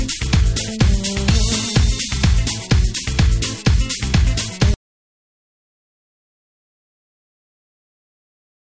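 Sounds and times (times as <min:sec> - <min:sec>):
Latin rhythm: 0:00.0 - 0:04.8.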